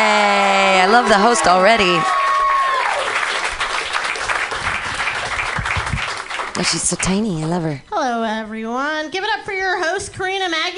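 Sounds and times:
audience applause and cheering for a comedian introduced on stage: 0.0 - 7.1
speech: 0.9 - 2.2, 6.6 - 10.7.

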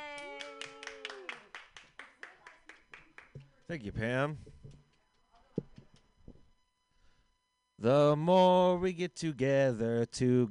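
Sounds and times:
hand clapping: 0.0 - 3.7
speech: 3.7 - 4.5, 7.8 - 10.4.

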